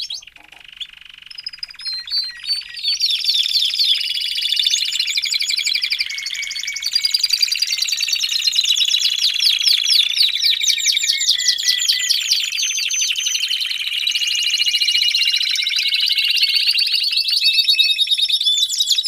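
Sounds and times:
domestic canary in full song: 0.0 - 19.0.

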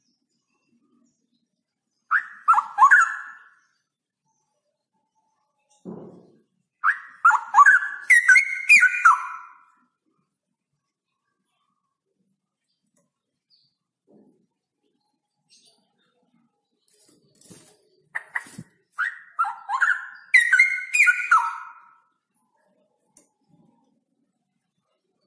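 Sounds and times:
straw-headed bulbul gurgling whistled song: 2.1 - 3.6, 6.8 - 9.7, 18.1 - 22.0.

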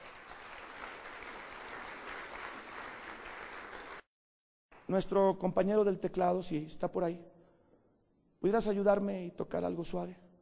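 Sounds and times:
audience applauding: 0.0 - 4.1
speech: 4.9 - 7.4, 8.4 - 10.2.

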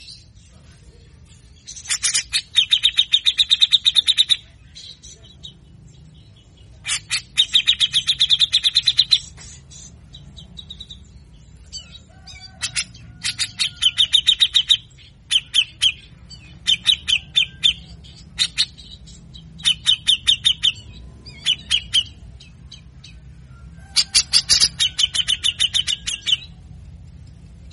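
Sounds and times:
Grey-cheeked Bulbul singing harsh rasping notes: 0.0 - 27.7.

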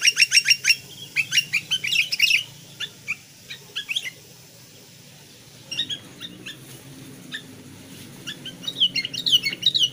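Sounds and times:
sooty-headed bulbul chattering: 0.0 - 9.9.

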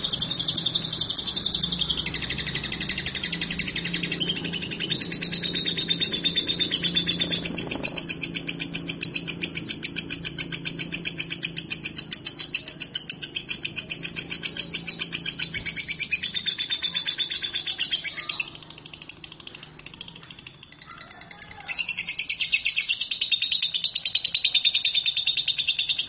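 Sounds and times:
lovebird shrill rapid chirping calls: 0.0 - 26.0.

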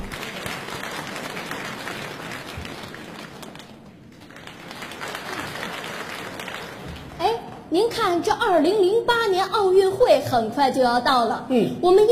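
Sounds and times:
audience applause: 0.0 - 7.2
speech: 7.7 - 12.1.

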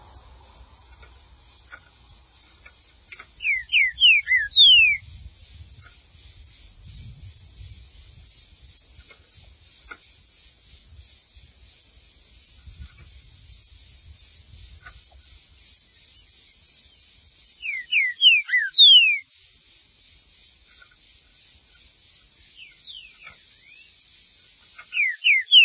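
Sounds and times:
green-winged saltator song: 3.4 - 5.1, 17.6 - 19.3, 22.5 - 24.0, 24.9 - 25.6.

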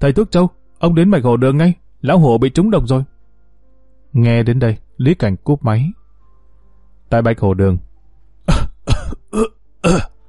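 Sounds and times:
speech: 0.0 - 3.1, 4.1 - 6.0, 7.1 - 7.9, 8.5 - 10.1
poisoned man coughing and retching, vomiting and coughing up blood: 8.5 - 10.2.

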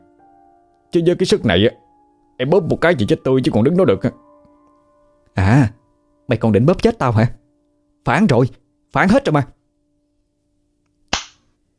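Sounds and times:
speech: 0.9 - 1.8, 2.4 - 4.2, 5.4 - 7.4, 8.0 - 9.6
hard slap across the face: 11.1 - 11.5.

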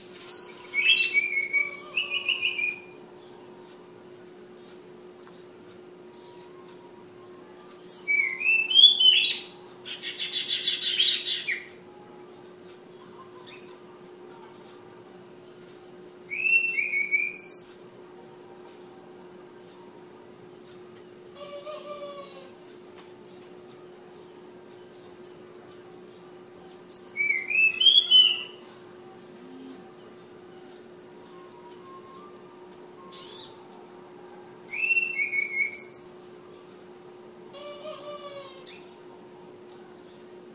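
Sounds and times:
Flowerpecker song: 0.1 - 3.4, 6.1 - 12.4, 13.0 - 13.8, 16.3 - 18.0, 26.9 - 29.2, 29.8 - 36.7, 37.6 - 39.1.

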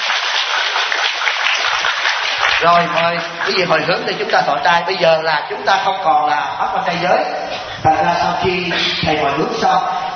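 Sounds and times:
audience applause at a Buddhist dharma gathering in Atlanta: 0.0 - 4.6
speech: 2.6 - 10.0.

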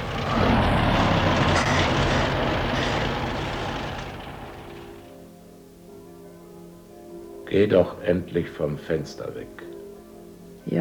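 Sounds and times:
bus driving away: 0.0 - 5.1
speech: 7.5 - 9.8, 10.6 - 10.8.

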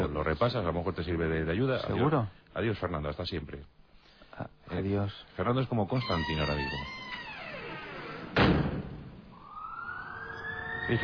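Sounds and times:
speech: 0.1 - 3.8, 4.4 - 7.0
ambulance siren: 9.3 - 11.0.

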